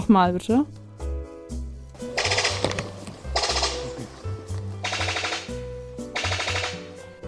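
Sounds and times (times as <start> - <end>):
speech: 0.1 - 0.8
sicklebill bird-of-paradise Epimachus rattling call: 2.2 - 3.9, 4.8 - 5.6, 6.2 - 6.9.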